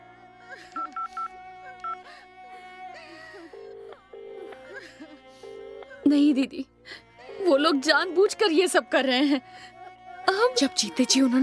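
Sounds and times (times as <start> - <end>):
steady telephone tones: 0.8 - 2.0, 3.1 - 6.2
telephone keypad beeps: 0.8 - 2.0
speech: 6.1 - 9.8, 10.4 - 11.4.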